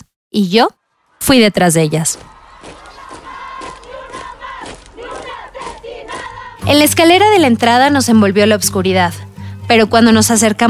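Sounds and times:
speech: 0:00.3 - 0:02.3, 0:06.7 - 0:10.6
group of women shouting angrily: 0:01.2 - 0:06.6.

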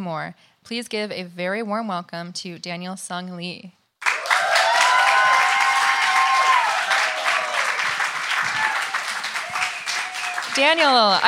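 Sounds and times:
speech: 0:00.0 - 0:03.8, 0:10.6 - 0:11.2
audience applause: 0:04.0 - 0:11.2.

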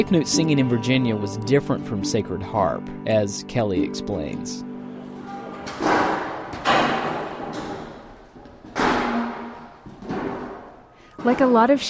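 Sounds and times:
speech: 0:00.0 - 0:04.7, 0:11.2 - 0:11.8
low murmur of activity: 0:04.7 - 0:11.6
folding chairs being set up: 0:04.9 - 0:11.4.

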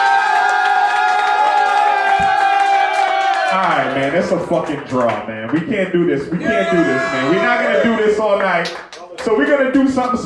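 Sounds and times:
crowd cheering and whooping at a live rap battle at Phoenix Landing: 0:00.0 - 0:03.7, 0:06.4 - 0:08.2
speech: 0:04.0 - 0:10.2.

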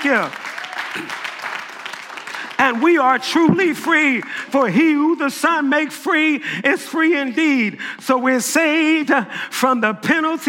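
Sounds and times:
speech: 0:00.0 - 0:01.2, 0:02.6 - 0:10.4
audience clapping hands: 0:00.0 - 0:06.0.

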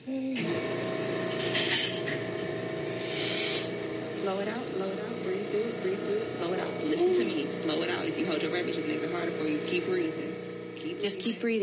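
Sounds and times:
medical machine turning on loudly: 0:00.3 - 0:11.6
speech: 0:04.3 - 0:11.6.

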